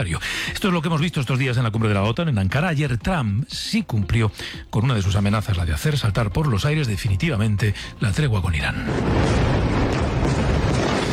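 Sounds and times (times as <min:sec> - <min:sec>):
speech: 0:00.0 - 0:09.5
bombing explosions at dawn in Iran: 0:08.0 - 0:11.1.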